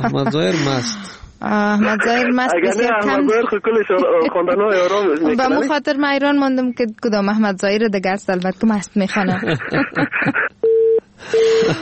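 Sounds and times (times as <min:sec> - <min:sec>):
laughter: 0:00.0 - 0:00.8, 0:03.2 - 0:05.1, 0:09.1 - 0:10.5, 0:11.2 - 0:11.8
speech: 0:00.0 - 0:10.4
busy tone after a disconnected phone call: 0:10.6 - 0:11.6.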